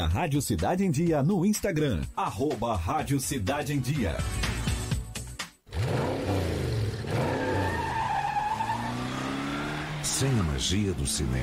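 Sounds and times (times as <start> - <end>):
speech: 0.0 - 4.6, 10.2 - 11.4
car revving in a cinema advert sound effect: 5.7 - 11.4
car tire screeching: 5.7 - 11.4.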